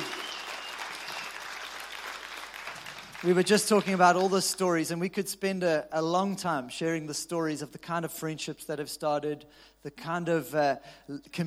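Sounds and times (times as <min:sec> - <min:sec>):
round of applause: 0:00.0 - 0:04.5
speech: 0:03.2 - 0:11.4.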